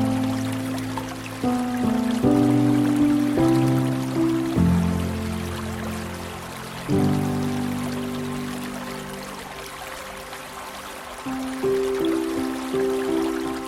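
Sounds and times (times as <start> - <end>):
slow piano music: 0.0 - 13.6
trickling water hiss: 0.0 - 13.6.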